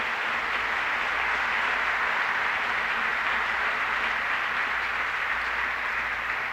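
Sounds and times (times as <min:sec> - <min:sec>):
audience applause: 0:00.0 - 0:06.5.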